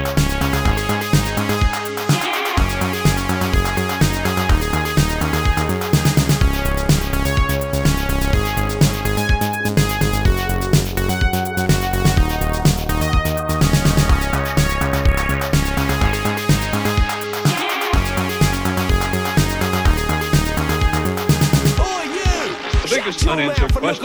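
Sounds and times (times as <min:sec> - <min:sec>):
intro theme on an analog synthesizer: 0:00.0 - 0:23.9.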